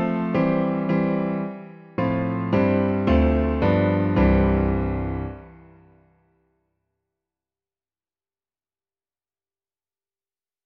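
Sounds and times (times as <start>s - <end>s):
piano: 0.0s - 6.3s.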